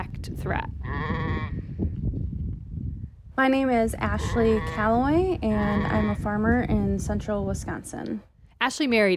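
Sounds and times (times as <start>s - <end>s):
speech: 0.2s - 1.7s, 3.4s - 9.1s
sheep bleating on a farm: 0.8s - 1.5s, 4.2s - 5.0s.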